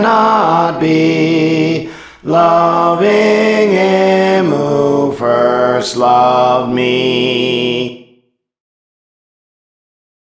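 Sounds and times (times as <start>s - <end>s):
alto voice singing a praise song: 0.0s - 8.2s.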